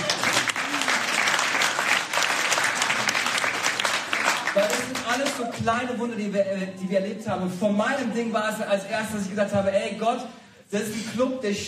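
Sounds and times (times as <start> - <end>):
audience applause: 0.0 - 5.6
speech: 5.2 - 11.6.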